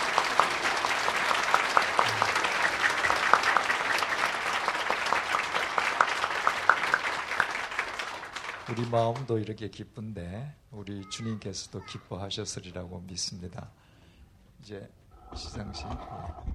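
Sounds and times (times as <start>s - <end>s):
audience applause: 0.0s - 9.3s
speech: 8.7s - 13.8s, 14.7s - 16.5s.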